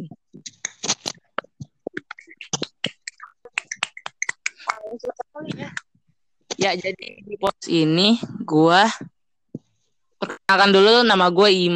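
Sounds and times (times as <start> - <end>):
small group clapping hands: 3.5 - 4.8
speech: 6.6 - 9.1, 10.5 - 11.7.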